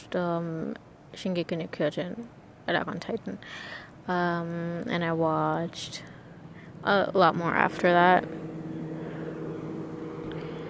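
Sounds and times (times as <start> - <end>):
speech: 0.1 - 6.2, 6.8 - 8.6
airplane flying overhead: 5.8 - 10.6.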